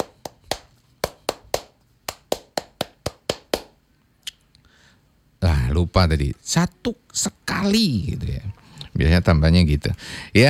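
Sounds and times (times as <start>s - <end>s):
rhythmic Scout hand-clap pattern: 0.0s - 3.8s
speech: 5.8s - 10.4s.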